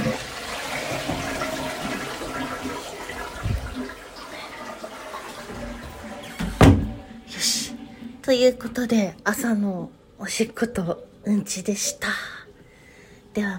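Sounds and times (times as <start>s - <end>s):
toilet flushing: 0.0s - 10.7s
speech: 8.3s - 12.4s, 13.3s - 13.5s.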